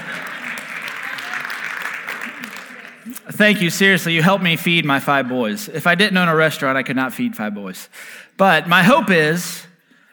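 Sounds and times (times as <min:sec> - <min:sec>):
round of applause: 0:00.0 - 0:03.3
speech: 0:03.4 - 0:09.7.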